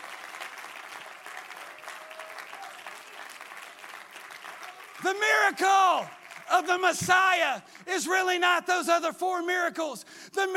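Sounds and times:
audience clapping hands: 0:00.0 - 0:08.4
speech: 0:05.0 - 0:10.5.

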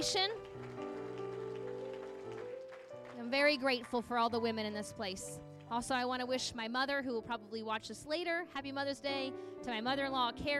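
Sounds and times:
speech: 0:00.0 - 0:00.7, 0:03.3 - 0:10.5
audience applause: 0:00.4 - 0:04.4.

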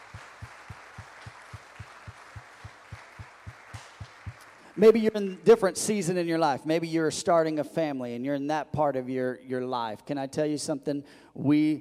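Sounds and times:
low thumping beat: 0:00.0 - 0:04.4
audience clapping: 0:00.0 - 0:06.3
speech: 0:04.8 - 0:11.7.

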